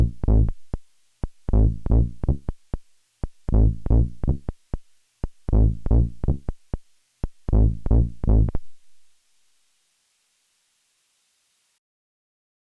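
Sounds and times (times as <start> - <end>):
aggressive dance bass line: 0.0 - 8.7.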